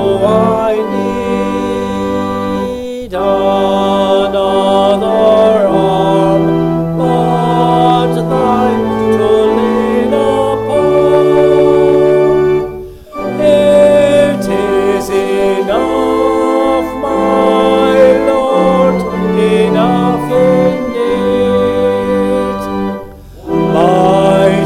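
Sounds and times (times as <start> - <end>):
hymn: 0.0 - 24.6.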